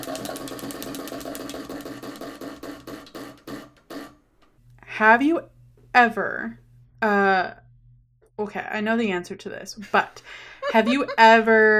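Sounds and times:
wheel of questions spinning with ticking clicks: 0.0s - 4.1s
speech: 5.0s - 7.6s, 8.4s - 11.7s
laughter: 10.4s - 11.7s.

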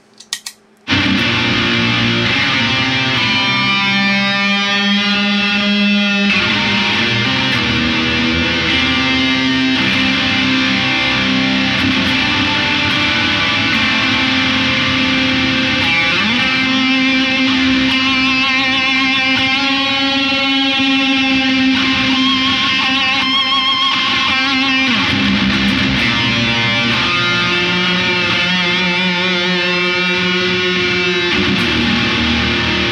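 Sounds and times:
overdriven electric guitar with modulation, delay and reverb: 0.9s - 32.9s.

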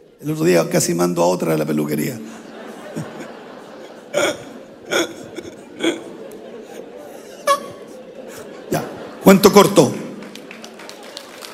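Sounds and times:
speech: 0.2s - 3.1s, 9.4s - 10.0s
laughter: 1.7s - 11.5s
murmur of voices: 2.4s - 9.4s
hand claps: 10.2s - 11.5s.

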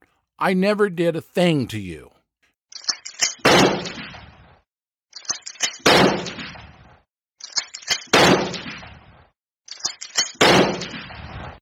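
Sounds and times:
speech: 0.4s - 2.2s
shotgun firing: 3.4s - 4.4s, 5.8s - 6.8s, 8.1s - 9.1s, 10.4s - 11.4s.

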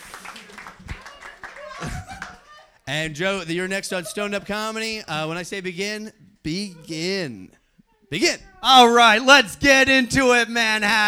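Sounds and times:
audience clapping: 0.0s - 7.5s
laughter: 0.0s - 11.0s
speech: 2.9s - 11.0s.

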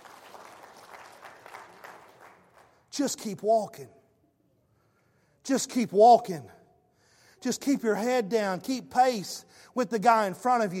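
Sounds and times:
audience hand clapping in praise: 0.0s - 2.9s
speech: 3.0s - 4.0s, 5.5s - 6.6s, 7.4s - 10.7s.

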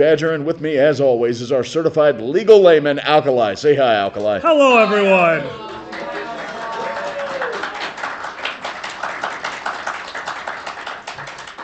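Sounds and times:
speech: 0.0s - 5.8s
applause: 4.5s - 11.6s.

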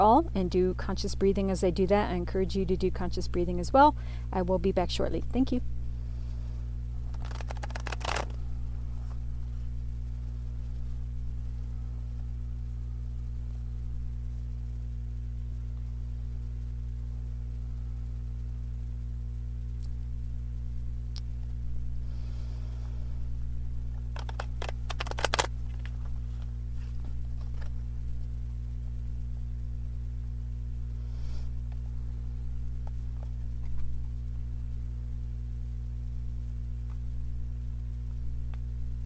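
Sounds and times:
speech: 0.0s - 5.8s
low electrical hum: 0.0s - 39.0s
tarot cards being shuffled: 7.0s - 8.4s, 23.9s - 27.8s.

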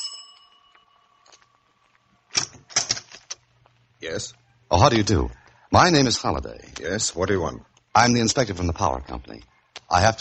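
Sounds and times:
doorbell ringing: 0.0s - 1.2s
speech: 4.0s - 10.1s.

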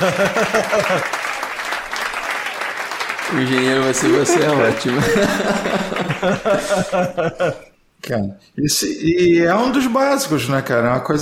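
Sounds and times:
speech: 0.0s - 1.4s, 3.3s - 11.2s
laughter: 0.0s - 2.0s, 3.3s - 7.8s
applause: 0.0s - 6.6s.

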